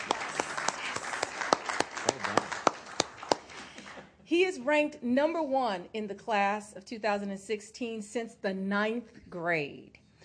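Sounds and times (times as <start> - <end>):
audience applause: 0.0 - 4.0
speech: 4.3 - 10.0.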